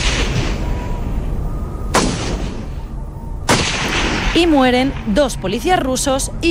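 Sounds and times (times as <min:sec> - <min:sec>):
gunshots: 0:00.0 - 0:00.8, 0:01.9 - 0:02.7, 0:03.4 - 0:05.1
speech: 0:04.4 - 0:06.5.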